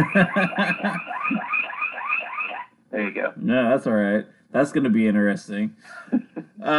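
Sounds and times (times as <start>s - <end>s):
speech: 0.0s - 1.4s, 3.2s - 6.7s
laughter: 0.0s - 1.5s, 5.8s - 6.7s
harsh pulsing beeps: 0.0s - 2.7s
electronic alarm warbling: 0.0s - 2.8s.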